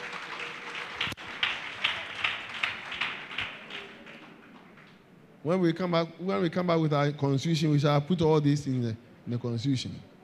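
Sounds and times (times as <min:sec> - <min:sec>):
crowd clapping hands in a steady rhythm: 0:00.0 - 0:05.1
speech: 0:05.4 - 0:10.1.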